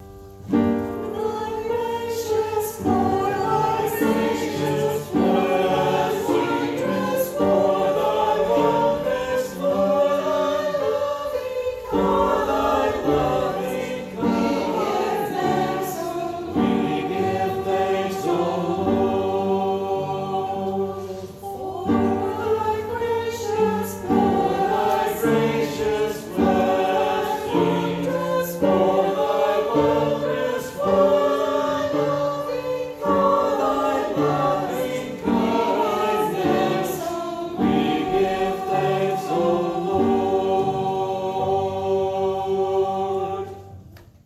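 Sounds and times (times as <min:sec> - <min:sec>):
parish choir singing: 0:00.0 - 0:44.2.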